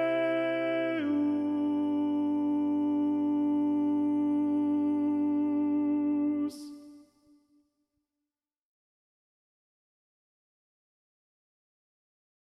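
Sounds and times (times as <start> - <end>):
TTBB choir with second tenor part predominant: 0.0 - 7.0.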